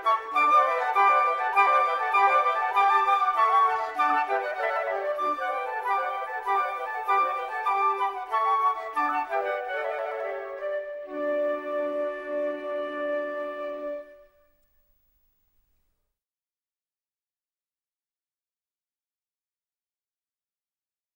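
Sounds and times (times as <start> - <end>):
five transverse flutes playing allegro in D major: 0.0 - 14.8.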